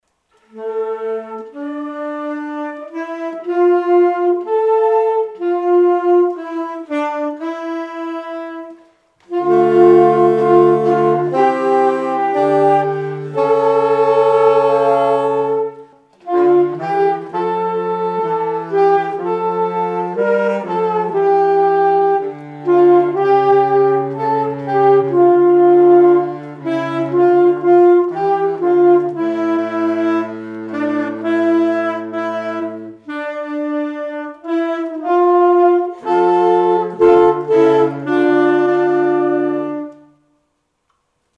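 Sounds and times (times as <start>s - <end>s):
saxophone: 0.1s - 40.5s
transverse flutes: 0.4s - 40.3s.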